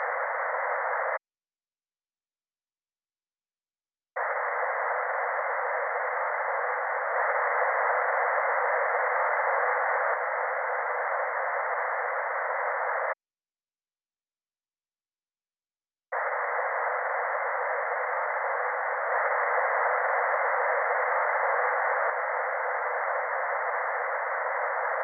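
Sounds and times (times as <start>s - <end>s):
surround sound speaker balance test sound: 0.0s - 1.2s, 4.2s - 13.2s, 16.1s - 25.0s.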